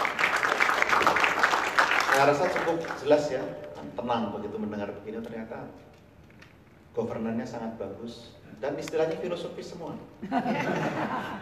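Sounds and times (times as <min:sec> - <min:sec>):
audience applause: 0:00.0 - 0:03.0
speech: 0:02.2 - 0:05.9, 0:07.0 - 0:11.4
laughter: 0:10.2 - 0:11.4.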